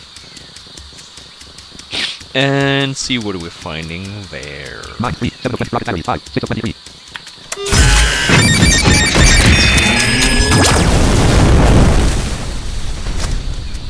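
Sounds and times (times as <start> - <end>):
speech: 2.3 - 6.9
high whining tones: 7.5 - 10.9
rocket battery explosions in a video game: 7.7 - 13.8.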